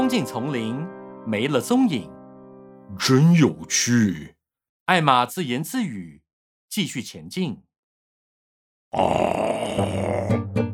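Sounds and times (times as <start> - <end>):
speech: 0.1 - 2.2, 2.9 - 7.7, 8.9 - 10.3
monster roar: 8.9 - 10.4.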